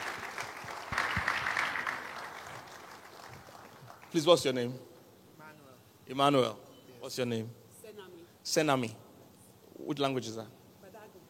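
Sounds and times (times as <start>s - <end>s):
audience clapping: 0.0s - 4.6s
speech: 4.1s - 4.9s, 6.1s - 7.6s, 8.4s - 9.0s, 9.8s - 10.6s.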